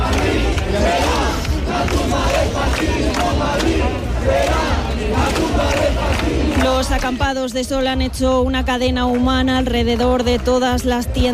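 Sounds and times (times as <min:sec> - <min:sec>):
large crowd of protest campers chanting: 0:00.0 - 0:07.2
speech: 0:07.1 - 0:11.3.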